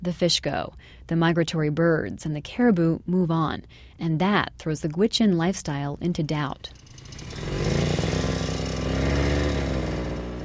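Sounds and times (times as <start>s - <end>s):
speech: 0.0s - 7.7s
snowmobile engine running: 6.7s - 10.4s.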